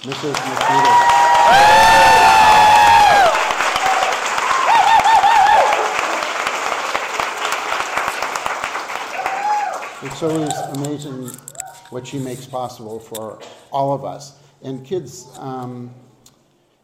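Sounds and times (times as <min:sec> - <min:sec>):
speech: 0:00.0 - 0:02.1, 0:10.0 - 0:16.1
round of applause from assembly: 0:00.0 - 0:10.8.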